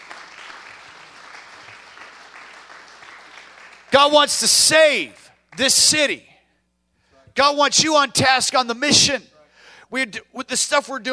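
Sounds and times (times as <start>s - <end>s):
audience applause: 0.0s - 4.0s
speech: 4.0s - 6.3s, 7.4s - 9.3s, 9.9s - 11.1s.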